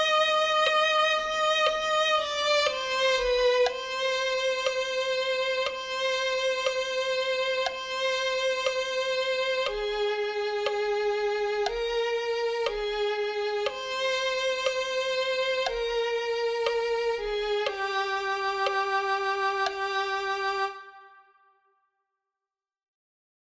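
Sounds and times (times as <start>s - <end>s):
violin: 0.0s - 21.5s.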